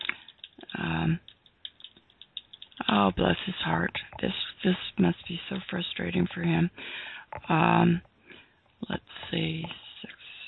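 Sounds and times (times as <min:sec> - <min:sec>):
typing on a computer keyboard: 0:00.0 - 0:02.9
speech: 0:03.0 - 0:08.1, 0:08.8 - 0:09.8.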